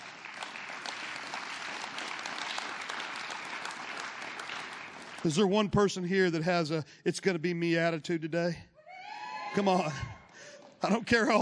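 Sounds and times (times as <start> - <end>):
large group clapping hands: 0.0 - 6.4
speech: 5.2 - 8.7, 9.5 - 10.2, 10.8 - 11.4.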